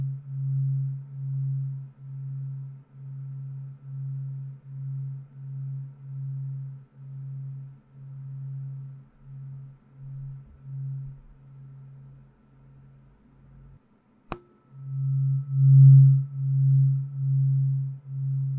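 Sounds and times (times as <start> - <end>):
low tuning fork humming with beating pulse: 0.0 - 18.5
sharp tap: 14.3 - 14.6.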